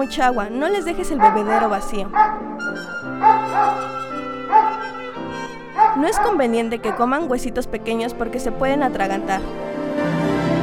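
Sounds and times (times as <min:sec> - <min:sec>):
speech: 0:00.0 - 0:04.0, 0:06.0 - 0:09.7
dog barking: 0:01.0 - 0:02.5, 0:03.2 - 0:05.0, 0:05.7 - 0:07.3.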